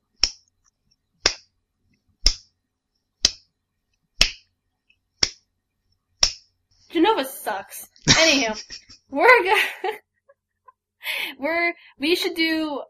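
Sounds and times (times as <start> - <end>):
slow hand claps: 4.2 - 4.4
speech: 7.1 - 10.1, 11.1 - 12.8.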